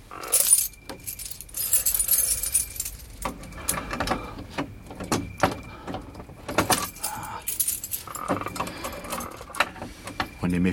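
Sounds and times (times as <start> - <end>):
burglar's skeleton keys jangling at a sealed door lock: 0.2 - 4.2, 5.0 - 10.4.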